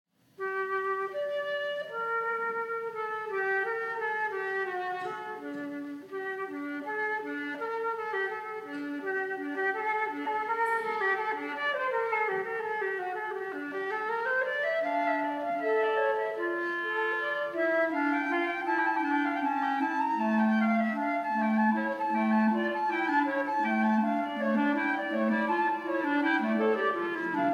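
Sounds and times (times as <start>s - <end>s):
wind quintet playing an organ fugue in G minor: 0.3s - 27.5s.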